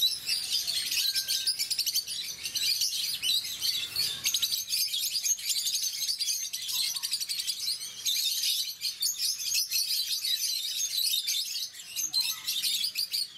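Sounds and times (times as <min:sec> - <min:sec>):
rosy-faced lovebirds chirping shrilly: 0:00.0 - 0:13.3.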